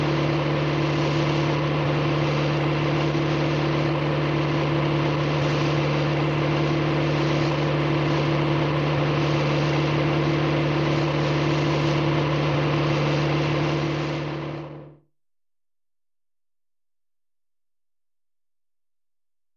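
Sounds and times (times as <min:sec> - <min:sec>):
car engine noise: 0:00.0 - 0:15.0.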